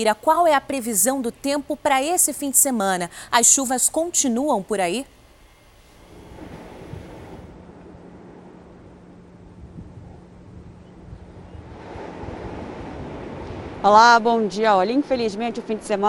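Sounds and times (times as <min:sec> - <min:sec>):
speech: 0:00.0 - 0:05.2, 0:13.8 - 0:16.0
ocean surf at a beach: 0:06.0 - 0:10.6, 0:11.3 - 0:16.0
gusty wind noise on microphone: 0:06.0 - 0:14.8.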